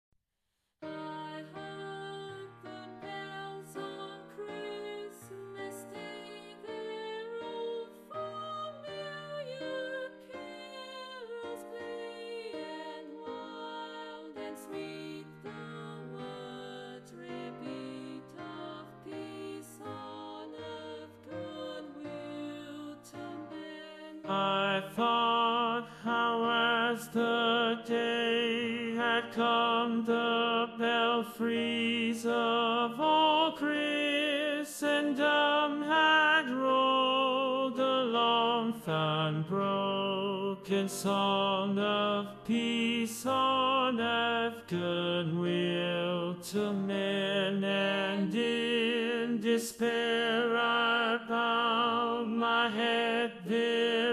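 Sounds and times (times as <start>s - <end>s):
tenor singing: 0.8s - 54.1s.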